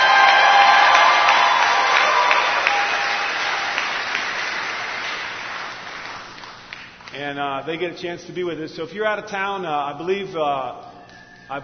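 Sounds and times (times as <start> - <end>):
audience applause: 0.0 - 7.0
speech: 7.4 - 10.9, 11.5 - 11.6.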